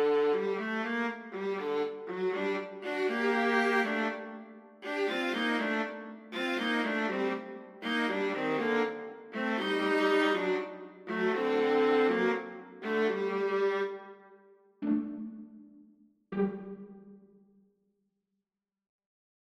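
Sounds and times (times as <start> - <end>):
viola soliloquy: 0.0 - 14.0.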